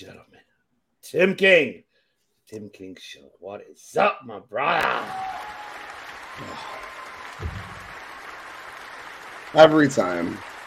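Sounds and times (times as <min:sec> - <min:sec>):
speech: 0:01.1 - 0:01.8, 0:02.5 - 0:05.3, 0:06.4 - 0:07.6, 0:09.5 - 0:10.5
round of applause: 0:04.8 - 0:10.6
low thump: 0:07.4 - 0:08.1.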